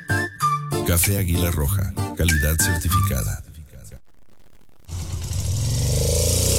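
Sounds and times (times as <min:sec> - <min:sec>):
speech: 0:00.9 - 0:03.4
Suzuki DR150 motorcycle engine revving: 0:04.0 - 0:06.5.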